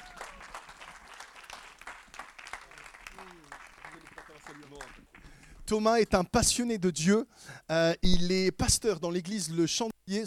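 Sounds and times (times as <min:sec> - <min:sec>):
audience applause: 0:00.0 - 0:05.4
speech: 0:05.7 - 0:10.2.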